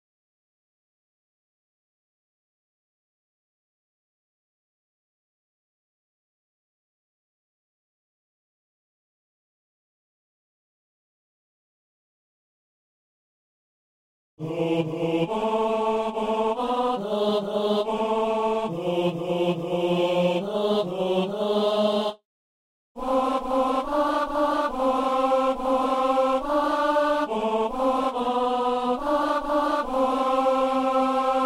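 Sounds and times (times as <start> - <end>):
tenor singing: 14.4 - 22.2, 23.0 - 31.4.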